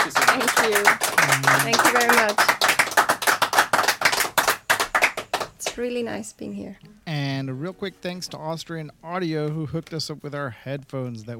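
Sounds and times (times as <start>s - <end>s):
audience applause: 0.0s - 5.5s
speech: 0.6s - 2.6s, 5.8s - 11.3s.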